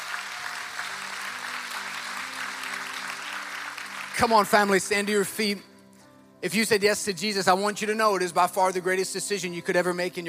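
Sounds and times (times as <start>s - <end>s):
audience clapping: 0.0s - 5.1s
speech: 4.2s - 5.7s, 6.4s - 10.2s.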